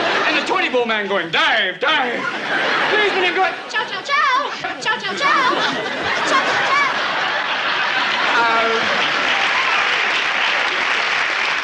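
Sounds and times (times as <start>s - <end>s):
laughter: 0.0s - 0.8s, 2.0s - 11.6s
speech: 0.7s - 6.8s, 8.4s - 9.1s
clapping applause: 7.9s - 11.6s.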